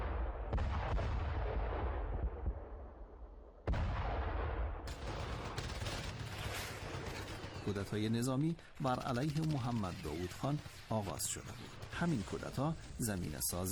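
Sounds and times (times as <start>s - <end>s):
artillery cannon fire: 0.0s - 13.0s
speech: 7.7s - 13.7s.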